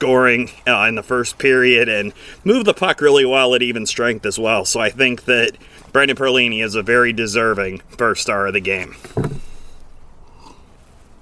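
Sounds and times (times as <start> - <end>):
speech: 0.0 - 9.5
person sipping a beer: 9.2 - 11.2.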